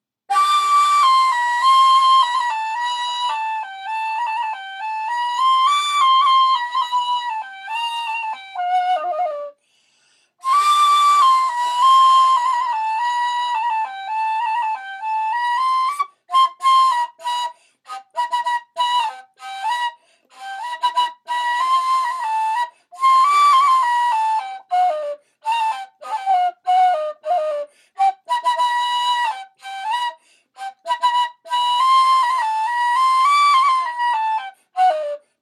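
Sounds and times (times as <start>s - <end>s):
Dulab Hijaz instrumental music: 0.3s - 35.4s.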